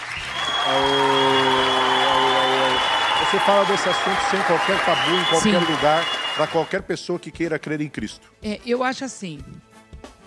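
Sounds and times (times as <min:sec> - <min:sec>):
crowd round of applause: 0:00.0 - 0:06.8
speech: 0:03.3 - 0:09.7.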